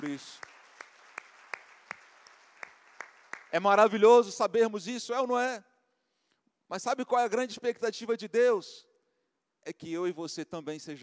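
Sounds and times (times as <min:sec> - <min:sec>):
speech: 0:00.0 - 0:00.5, 0:03.5 - 0:05.7, 0:06.7 - 0:08.9, 0:09.6 - 0:11.0
audience applause: 0:00.0 - 0:03.6.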